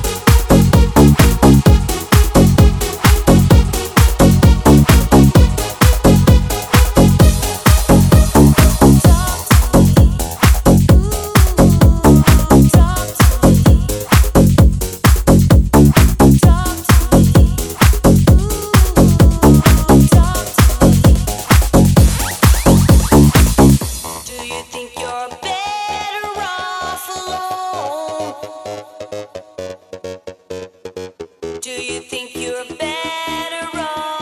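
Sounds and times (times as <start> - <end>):
retro music: 0.0 - 24.8.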